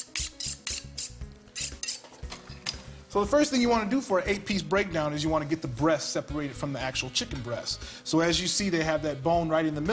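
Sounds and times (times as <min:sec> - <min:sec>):
sharpening an 8-inch Wusthof chef knife: 0:00.0 - 0:02.2
speech: 0:03.1 - 0:09.9.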